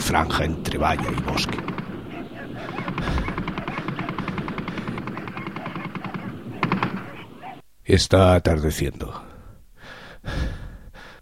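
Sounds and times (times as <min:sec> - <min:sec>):
speech: 0:00.1 - 0:01.7, 0:07.9 - 0:09.2
rapid automatic gunfire at a pack of dogs: 0:01.3 - 0:07.2.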